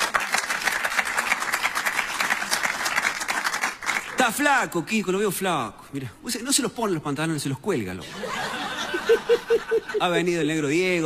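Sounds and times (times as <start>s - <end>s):
audience applause: 0.0s - 4.2s
speech: 4.2s - 11.0s
laughter: 8.0s - 10.3s.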